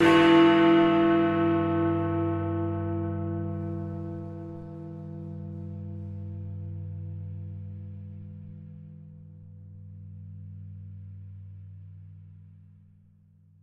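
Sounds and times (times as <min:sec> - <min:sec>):
single bell: 0:00.0 - 0:08.9.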